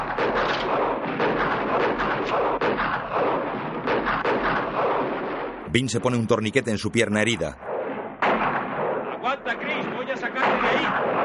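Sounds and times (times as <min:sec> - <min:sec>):
gunfire in the town-square shootout of the 1960 western The Magnificent Seven: 0:00.0 - 0:11.2
speech: 0:05.7 - 0:07.6.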